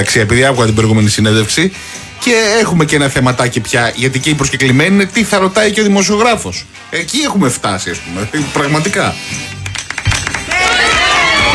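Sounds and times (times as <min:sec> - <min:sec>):
speech: 0:00.0 - 0:09.6
applause: 0:09.6 - 0:11.5.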